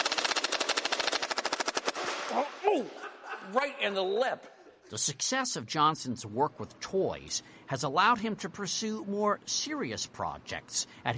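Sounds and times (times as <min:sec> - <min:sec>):
Nerf gun firing in a rapid burst: 0:00.0 - 0:02.3
speech: 0:02.3 - 0:11.1
laughter: 0:02.6 - 0:03.9.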